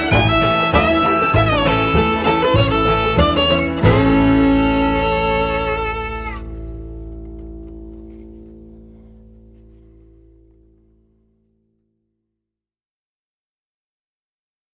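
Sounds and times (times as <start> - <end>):
fiddle tune: 0.0 - 10.0.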